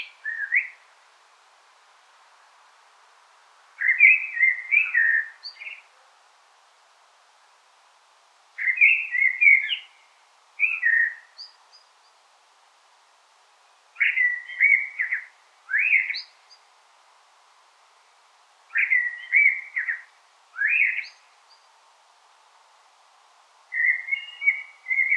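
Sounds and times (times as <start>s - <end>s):
common blackbird song: 0.0s - 0.9s, 3.8s - 5.9s, 8.6s - 12.2s, 13.6s - 16.7s, 18.7s - 21.7s, 23.7s - 25.1s.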